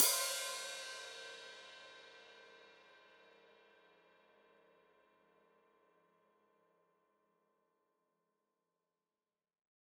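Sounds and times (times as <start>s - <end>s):
open hi-hat played with foot: 0.0s - 1.5s.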